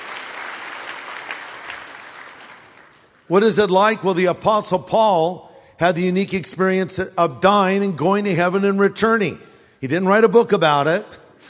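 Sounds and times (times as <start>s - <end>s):
audience applause: 0.0s - 3.3s
speech: 3.3s - 11.4s.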